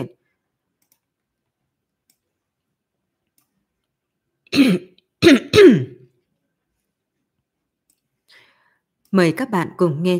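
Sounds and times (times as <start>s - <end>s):
speech: 4.5s - 5.9s, 9.1s - 10.1s
person clearing throat and coughing: 4.5s - 6.1s.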